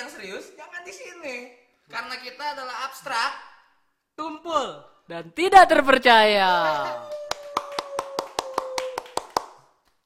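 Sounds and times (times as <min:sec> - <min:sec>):
speech: 0:00.2 - 0:03.5, 0:04.2 - 0:07.2
hand clapping: 0:06.8 - 0:10.0.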